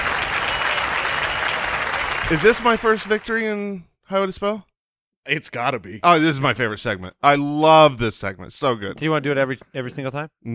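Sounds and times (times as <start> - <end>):
crowd applause sound effect: 0.0 - 3.4
speech: 2.3 - 10.5.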